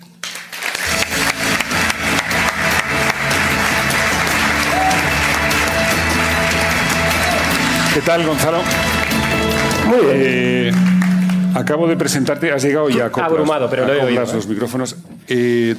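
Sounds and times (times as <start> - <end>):
audience applause: 0.2 - 11.5
speech: 8.0 - 9.0, 9.9 - 10.9, 11.6 - 15.7.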